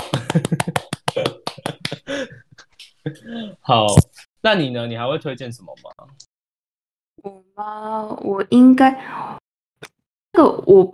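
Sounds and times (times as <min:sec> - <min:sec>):
light hand clapping: 0:00.0 - 0:03.0
laughter: 0:00.0 - 0:04.0
speech: 0:00.4 - 0:01.3, 0:03.7 - 0:05.9, 0:07.6 - 0:10.9.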